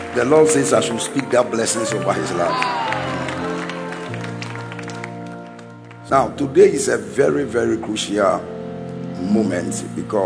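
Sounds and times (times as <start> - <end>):
audience clapping: 0.0 - 6.3
sustained keyboard chords: 0.0 - 10.2
speech: 0.2 - 3.3, 6.1 - 8.6, 9.2 - 10.2.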